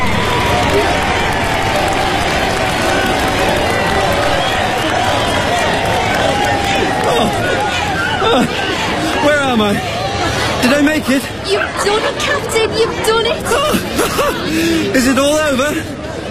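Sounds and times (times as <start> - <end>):
large crowd applauding and cheering at a marathon finish: 0.0 - 11.1
laughter: 0.6 - 16.2
indistinct voices and shouts: 1.8 - 13.9
speech: 11.0 - 16.2.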